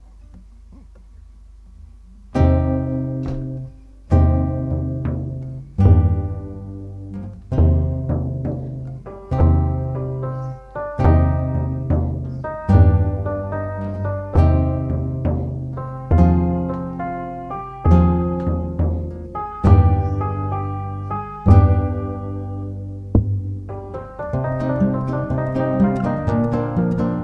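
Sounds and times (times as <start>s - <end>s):
instrumental music: 0.0s - 27.2s.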